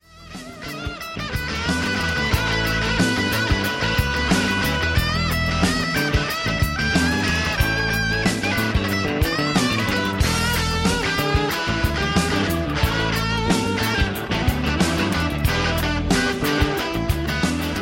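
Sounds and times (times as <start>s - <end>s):
guitar: 0.0s - 17.7s.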